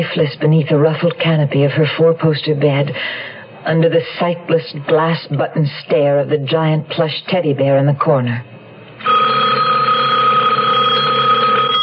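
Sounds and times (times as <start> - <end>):
speech: 0.1 - 9.3
telephone ringing: 9.0 - 11.8.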